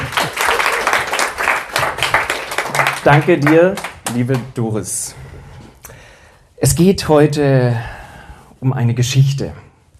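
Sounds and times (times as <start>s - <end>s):
audience applause: 0.0s - 4.5s
speech: 3.0s - 5.4s, 6.6s - 8.0s, 8.6s - 9.6s.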